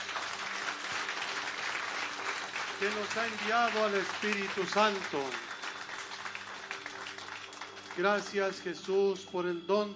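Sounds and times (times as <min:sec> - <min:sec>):
crowd applauding: 0:00.0 - 0:09.6
speech: 0:02.8 - 0:05.5, 0:08.0 - 0:09.9.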